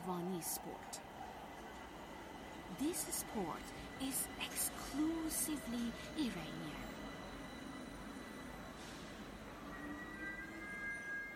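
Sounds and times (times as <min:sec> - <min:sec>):
speech: 0:00.0 - 0:01.1, 0:02.7 - 0:07.0
subway train running on rails: 0:00.0 - 0:11.3.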